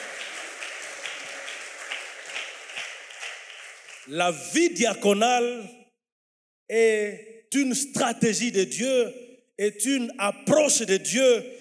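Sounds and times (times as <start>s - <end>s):
church congregation applauding during a morning service: 0.0s - 4.4s
speech: 4.1s - 5.8s, 6.7s - 11.6s.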